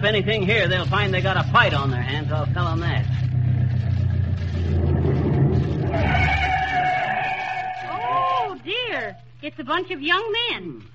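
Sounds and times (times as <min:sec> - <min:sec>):
speech: 0:00.0 - 0:03.3, 0:09.1 - 0:10.9
truck approaching: 0:00.0 - 0:08.7.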